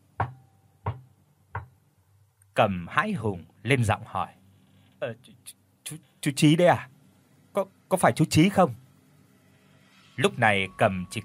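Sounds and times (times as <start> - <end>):
knocks on a door: 0.2 - 1.7
speech: 2.6 - 4.4, 5.0 - 6.9, 7.6 - 8.8, 10.2 - 11.2.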